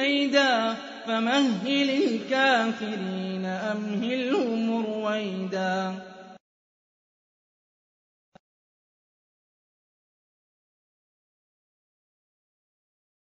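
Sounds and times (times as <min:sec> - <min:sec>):
Quran recitation: 0:00.0 - 0:06.4.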